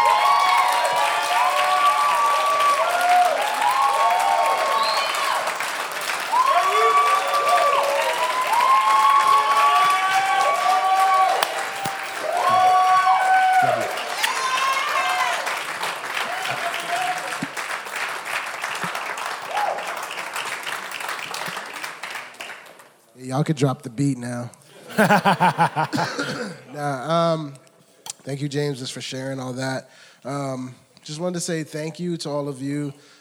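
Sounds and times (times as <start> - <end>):
audience applause: 0.0 - 22.9
speech: 23.4 - 27.6, 28.2 - 33.1
laughter: 24.7 - 27.0.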